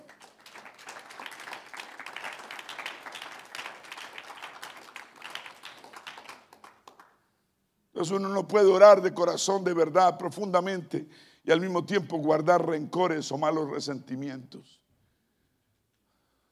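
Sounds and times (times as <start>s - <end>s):
audience applause: 0.0s - 7.1s
speech: 8.0s - 14.8s.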